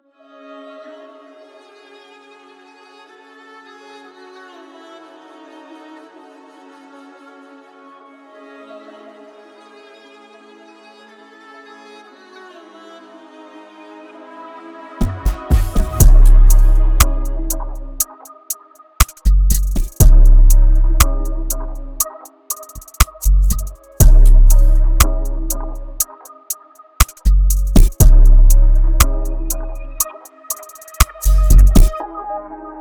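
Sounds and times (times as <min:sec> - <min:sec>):
experimental music: 0:15.0 - 0:32.7.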